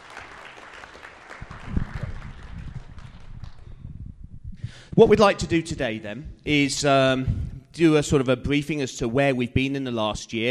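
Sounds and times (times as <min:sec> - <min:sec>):
crowd applause: 0:00.0 - 0:03.8
speech: 0:04.9 - 0:10.4.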